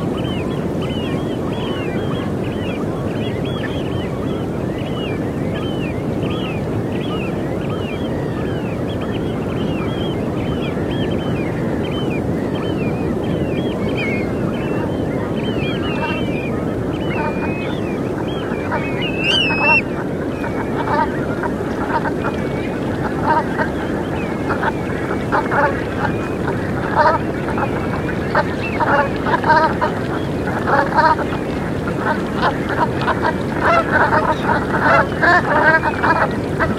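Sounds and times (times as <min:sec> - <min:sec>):
seabirds calling: 0:00.0 - 0:36.7
deep rush of ocean surf: 0:13.1 - 0:36.7.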